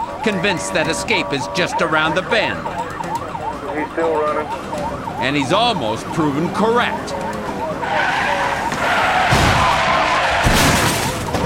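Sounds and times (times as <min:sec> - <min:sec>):
speech: 0:00.2 - 0:02.8, 0:03.8 - 0:07.3
police car ramming car's back fender: 0:07.8 - 0:11.4.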